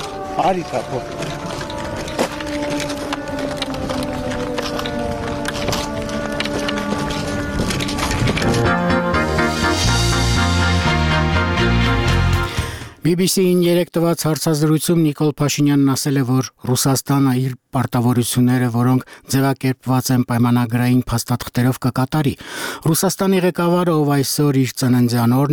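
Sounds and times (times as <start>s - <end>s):
alarm siren warning of a drone over Stepanakert: 0.0s - 12.5s
speech: 0.4s - 1.6s, 13.1s - 25.5s.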